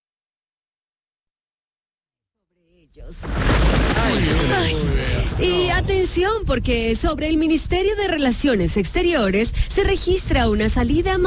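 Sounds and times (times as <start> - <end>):
speech: 2.9 - 11.2
thunder of approaching storm: 3.2 - 7.2.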